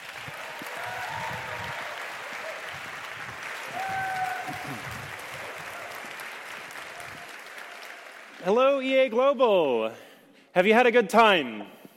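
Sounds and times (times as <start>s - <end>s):
big round of audience applause: 0.0s - 8.6s
speech: 8.4s - 10.0s, 10.6s - 11.8s.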